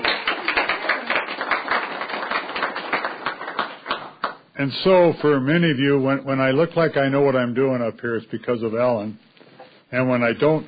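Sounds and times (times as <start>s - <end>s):
Senate round of applause: 0.0s - 4.5s
speech: 4.6s - 9.2s, 9.9s - 10.6s.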